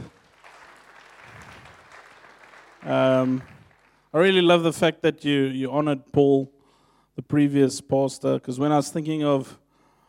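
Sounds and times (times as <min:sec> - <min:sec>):
crowd applause: 0:00.0 - 0:04.1
speech: 0:02.8 - 0:06.6, 0:07.2 - 0:09.6.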